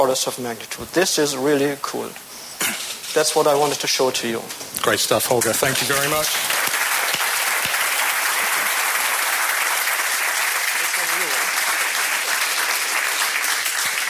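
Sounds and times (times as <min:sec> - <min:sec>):
speech: 0:00.0 - 0:06.6
audience applause: 0:05.6 - 0:14.0.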